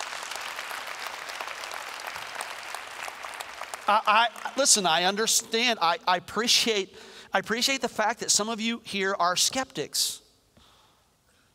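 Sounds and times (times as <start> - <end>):
audience applause: 0.0 - 4.7
speech: 3.9 - 10.2.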